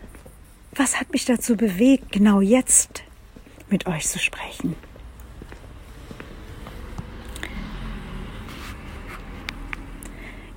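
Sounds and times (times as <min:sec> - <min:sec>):
speech: 0:00.8 - 0:03.1, 0:03.7 - 0:04.9
car driving past: 0:04.9 - 0:10.5.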